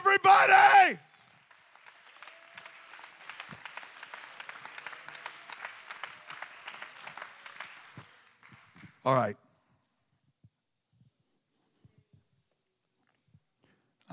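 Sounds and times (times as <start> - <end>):
audience clapping hands: 0.7 - 9.2
speech: 9.0 - 9.4.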